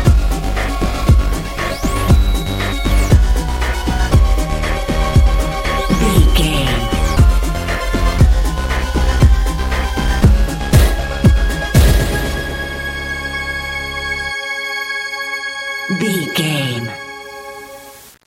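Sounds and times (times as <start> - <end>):
sunny dance music: 0.0 - 11.7, 15.9 - 17.0.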